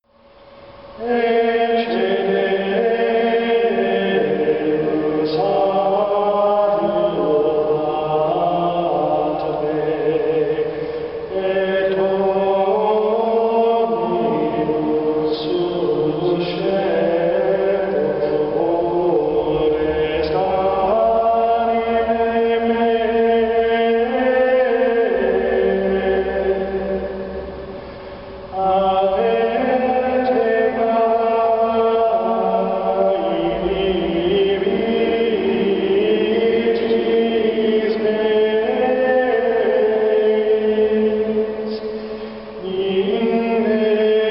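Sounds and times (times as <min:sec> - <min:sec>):
Gregorian chant choir: 0:01.0 - 0:27.6, 0:28.5 - 0:41.8, 0:42.6 - 0:44.3.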